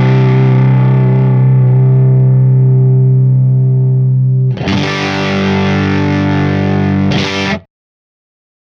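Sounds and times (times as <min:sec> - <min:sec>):
Fender 57 Deluxe guitar amplifier: 0:00.0 - 0:07.7.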